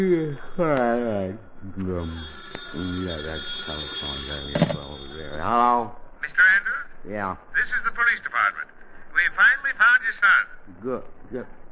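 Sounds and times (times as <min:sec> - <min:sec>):
thin steady high tone: 0:00.0 - 0:07.0
speech: 0:00.0 - 0:11.6
telephone ringing: 0:02.0 - 0:05.3.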